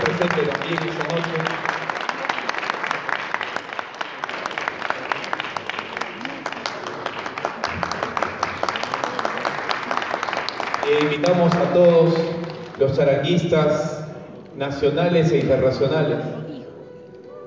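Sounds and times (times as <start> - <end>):
audience applause: 0.0 - 13.0
speech: 0.2 - 1.7, 11.0 - 14.0, 14.6 - 16.3.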